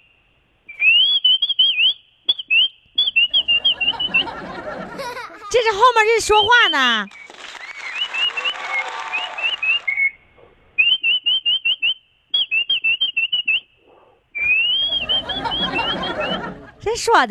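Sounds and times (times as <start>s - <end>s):
person whistling imitation birdsong: 0.0s - 4.8s, 6.3s - 16.6s
laughter: 3.4s - 5.9s, 14.8s - 16.9s
speech: 5.5s - 7.2s, 17.0s - 17.2s
clapping-like noise: 7.1s - 10.0s.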